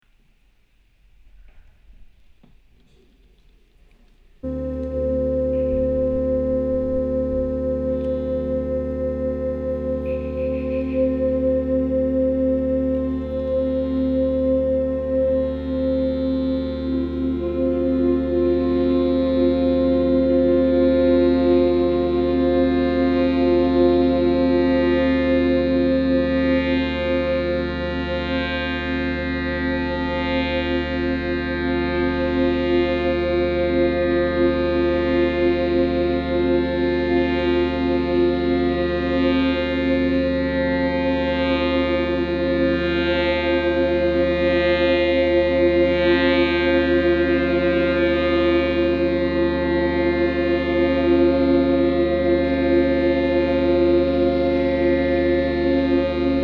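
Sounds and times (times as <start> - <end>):
drone: 4.4 - 56.4.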